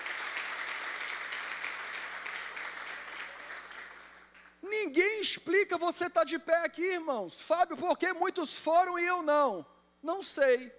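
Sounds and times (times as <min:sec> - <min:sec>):
audience applauding: 0:00.0 - 0:04.5
speech: 0:04.8 - 0:10.7.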